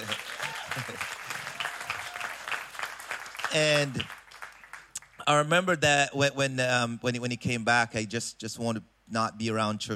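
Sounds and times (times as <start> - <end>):
audience applause: 0.0 - 5.0
speech: 3.5 - 4.2, 5.3 - 9.9.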